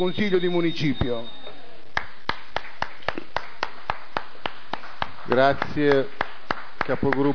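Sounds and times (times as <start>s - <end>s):
speech: 0.0s - 1.4s, 5.3s - 6.2s, 6.9s - 7.3s
applause in council chamber: 1.9s - 7.3s.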